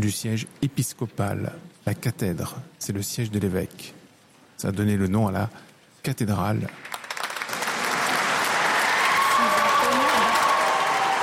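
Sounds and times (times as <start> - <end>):
speech: 0.0 - 4.0, 4.6 - 7.0
applause in a cathedral: 6.6 - 11.2.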